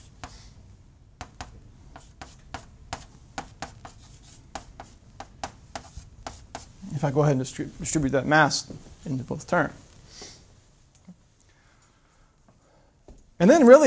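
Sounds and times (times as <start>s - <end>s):
writing out an equation for acceleration by hand: 0.0s - 0.4s, 1.2s - 6.8s
soft steady background: 0.0s - 13.8s
speech: 6.9s - 9.9s, 13.4s - 13.8s.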